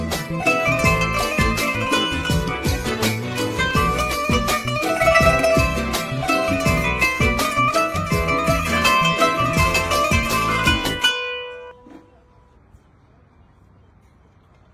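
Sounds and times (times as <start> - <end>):
santoor playing: 0.0 - 11.8.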